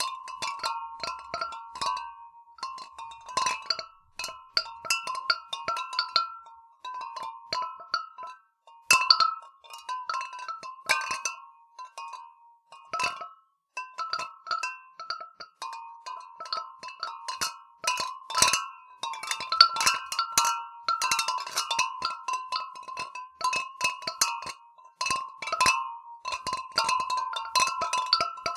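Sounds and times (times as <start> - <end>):
glass clinking in water: 0.0 - 28.5.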